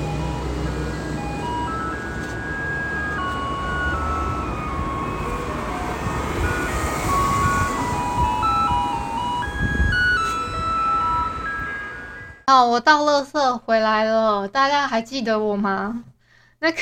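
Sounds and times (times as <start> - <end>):
garbage truck playing its music: 0.0 - 12.5
speech: 12.5 - 16.7.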